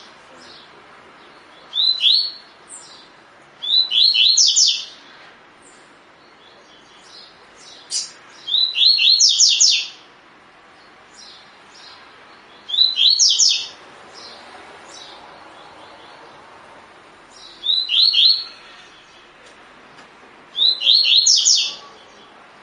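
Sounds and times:
double-collared seedeater song: 0.0 - 16.6, 17.2 - 19.5, 20.5 - 22.6.

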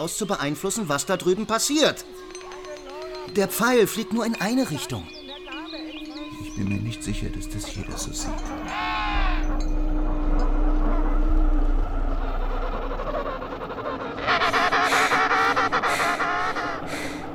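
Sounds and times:
speech: 0.0 - 2.4, 3.3 - 5.2, 6.5 - 8.8
penguin colony honking and braying: 1.5 - 17.3
low steady rumble: 8.5 - 15.6.

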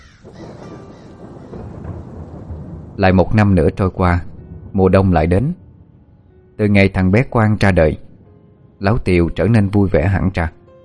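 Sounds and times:
crows cawing: 0.0 - 2.8
speech: 0.2 - 0.7, 3.0 - 5.6, 6.6 - 8.0, 8.8 - 10.6.

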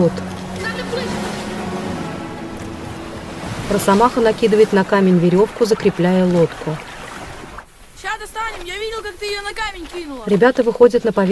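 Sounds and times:
speech: 0.0 - 0.3, 3.7 - 6.9, 8.2 - 11.3
waves crashing against rock walls of a grotto: 0.1 - 8.8.

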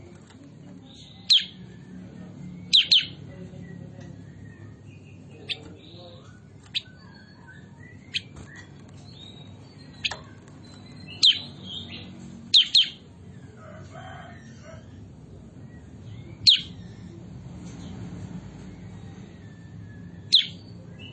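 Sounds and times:
bulbul chirping: 2.6 - 3.2, 4.4 - 13.0.

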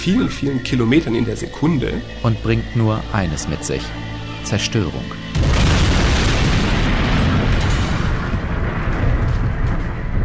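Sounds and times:
speech: 0.0 - 5.3
meteorite impact explosion: 5.3 - 10.2.

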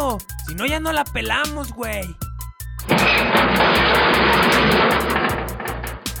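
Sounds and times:
speech: 0.1 - 2.2
car crash impact: 2.9 - 6.1.

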